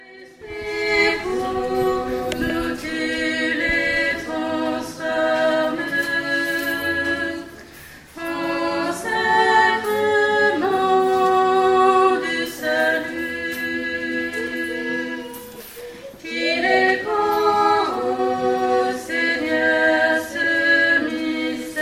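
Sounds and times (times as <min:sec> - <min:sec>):
offertory chant: 0:00.0 - 0:21.8.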